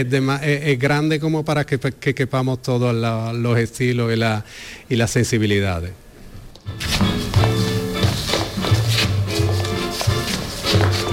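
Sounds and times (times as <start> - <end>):
speech: 0.0 - 6.0
dancers' steps in a swing dance class: 6.6 - 11.1.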